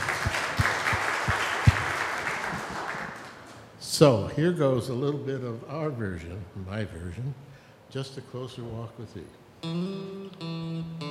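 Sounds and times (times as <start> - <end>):
scattered audience applause welcoming a piano player: 0.0 - 3.6
speech: 4.0 - 11.0.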